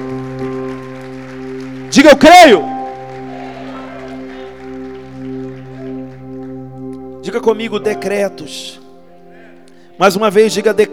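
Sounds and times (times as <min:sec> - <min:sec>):
audience clapping: 0:00.0 - 0:08.0
sustained keyboard or organ chords: 0:00.0 - 0:10.9
speech: 0:02.0 - 0:02.8, 0:07.2 - 0:08.8, 0:10.0 - 0:10.9.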